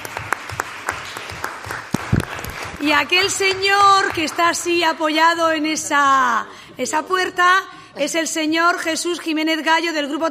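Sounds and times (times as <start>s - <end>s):
sparse audience hand claps at a town council session: 0.0s - 4.7s
speech: 2.8s - 10.2s.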